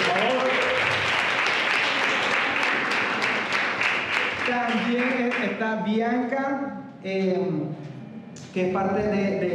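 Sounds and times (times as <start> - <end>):
audience applause: 0.0 - 5.5
speech: 4.8 - 7.9, 8.5 - 9.5.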